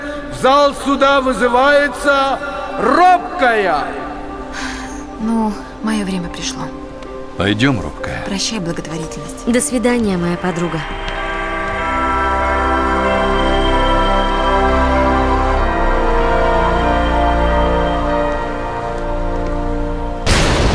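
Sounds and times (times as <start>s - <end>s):
speech: 0.4s - 4.0s, 5.2s - 6.8s, 7.4s - 11.2s
steady layered tonal drone: 9.7s - 20.6s.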